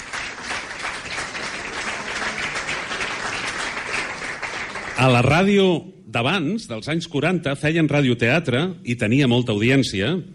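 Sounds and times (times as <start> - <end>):
audience applause: 0.0 - 5.3
speech: 5.0 - 10.3.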